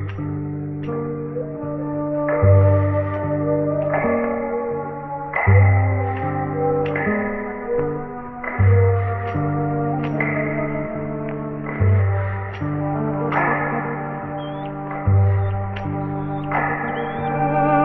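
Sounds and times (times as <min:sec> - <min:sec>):
flute in sad loops: 0:00.0 - 0:17.8
saxophone in sad loops: 0:00.8 - 0:17.8
strings in sad loops: 0:03.6 - 0:17.8.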